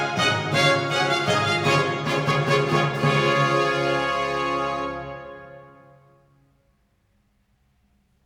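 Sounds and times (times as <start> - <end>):
orchestral minuet in D major: 0.0 - 6.2.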